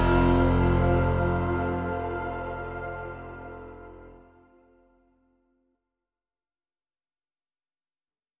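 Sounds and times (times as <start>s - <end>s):
music mix: 0.0s - 5.0s.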